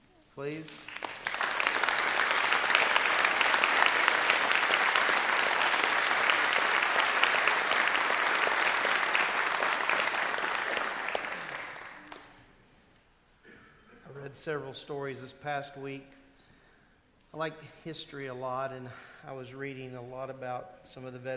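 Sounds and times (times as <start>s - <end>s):
speech: 0.4s - 1.0s, 14.4s - 16.2s, 17.4s - 21.3s
audience applause for military veterans: 0.7s - 12.4s.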